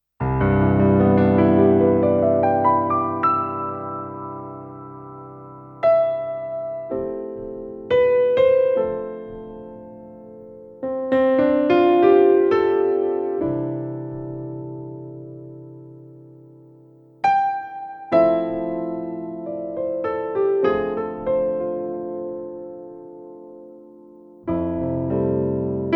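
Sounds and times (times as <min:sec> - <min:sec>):
Studiologic Numa X GT USA Grand piano: 0:00.0 - 0:25.9.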